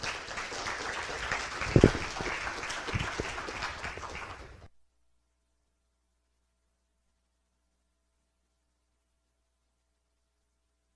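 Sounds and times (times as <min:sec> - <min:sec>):
audience applause welcoming a guest author to a writing talk: 0:00.0 - 0:04.7.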